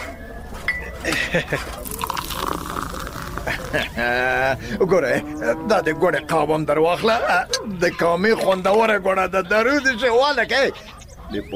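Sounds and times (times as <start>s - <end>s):
speech: 1.1s - 2.0s, 3.5s - 11.5s
tea poured into a cup: 1.7s - 4.5s.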